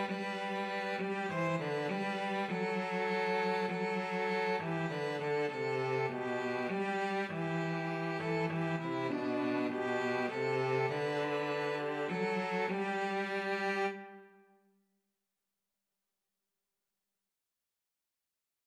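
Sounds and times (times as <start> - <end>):
violin and cello duet: 0.0 - 14.2.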